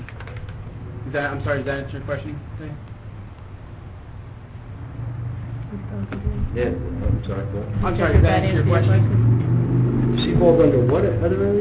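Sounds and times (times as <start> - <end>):
speech: 1.1 - 2.9, 5.7 - 11.5
motorcycle driving by: 4.8 - 11.5.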